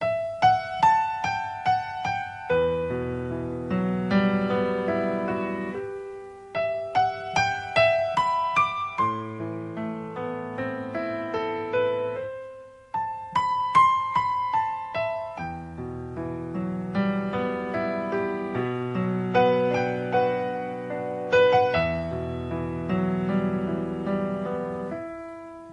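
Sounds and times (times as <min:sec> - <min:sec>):
music: 0:00.0 - 0:25.7.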